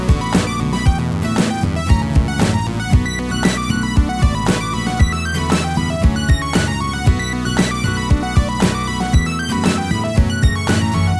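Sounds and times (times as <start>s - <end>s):
two-oscillator classic synthesizer tone: 0.0s - 11.1s.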